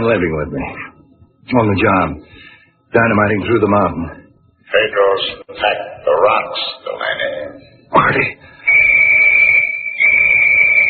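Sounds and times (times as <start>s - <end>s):
speech: 0.0s - 9.0s
warning whistle blowing before blasting: 8.7s - 10.8s.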